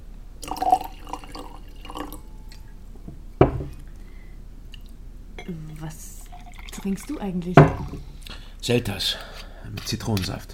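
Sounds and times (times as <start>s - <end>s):
wine pouring into a glass: 0.4s - 2.6s, 5.7s - 8.0s
glass or bottle set down with a sharp knock: 3.1s - 3.8s, 7.6s - 8.0s
speech: 6.8s - 10.5s.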